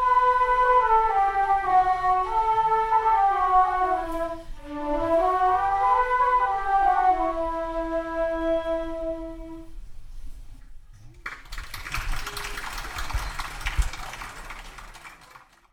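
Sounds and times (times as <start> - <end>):
flute melody: 0.0 - 9.8.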